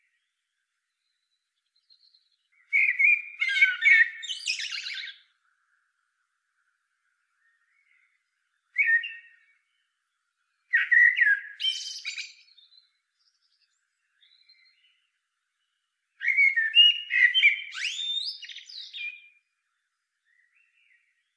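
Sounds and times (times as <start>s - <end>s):
Eurasian blackbird singing: 1.0s - 5.3s, 7.4s - 9.9s, 10.6s - 19.4s.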